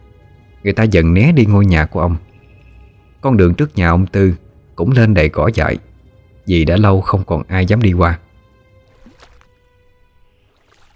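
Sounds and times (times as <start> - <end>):
speech: 0.6 - 2.3, 3.2 - 8.2
oars splashing in river water: 8.8 - 10.9.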